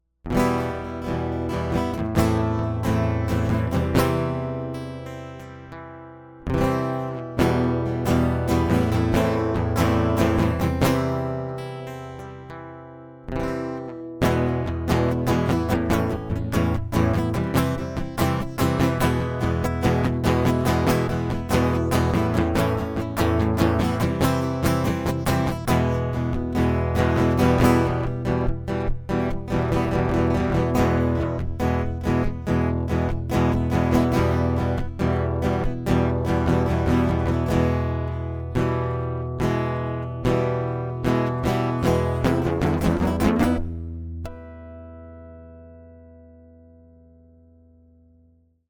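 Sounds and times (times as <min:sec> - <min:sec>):
acoustic music: 0:00.2 - 0:48.0.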